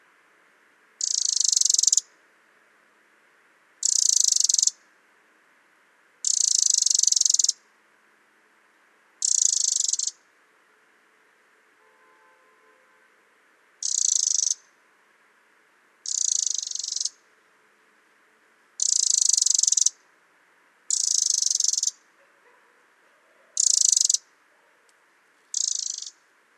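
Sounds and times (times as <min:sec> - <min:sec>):
Eurasian Wren Troglodytes troglodytes: 0:01.0 - 0:02.1, 0:03.8 - 0:04.9, 0:06.2 - 0:07.6, 0:09.2 - 0:10.3, 0:13.8 - 0:14.8, 0:16.0 - 0:17.3, 0:18.8 - 0:20.1, 0:20.9 - 0:26.3.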